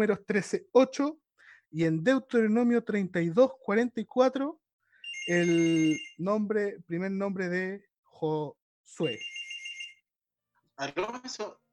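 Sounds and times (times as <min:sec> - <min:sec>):
speech: 0:00.0 - 0:04.6, 0:05.3 - 0:09.4, 0:10.8 - 0:11.6
incoming call electronic ringtone: 0:05.0 - 0:06.2, 0:09.0 - 0:10.1.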